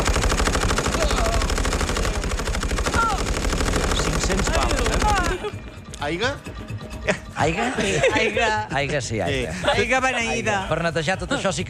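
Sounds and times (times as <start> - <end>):
machine gun fire: 0.0 - 5.6
laughter: 4.3 - 5.8, 7.0 - 11.6
speech: 6.0 - 6.5, 7.1 - 11.6.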